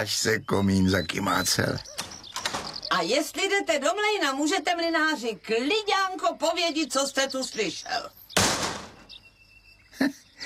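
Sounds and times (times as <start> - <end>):
speech: 0.0 - 2.1, 3.0 - 8.2, 10.0 - 10.2
door slamming: 2.0 - 2.9, 8.4 - 9.1.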